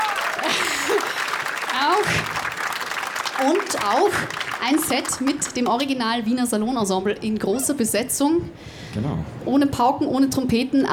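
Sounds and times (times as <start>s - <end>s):
audience applause: 0.0s - 6.0s
speech: 1.8s - 2.4s, 3.4s - 10.9s.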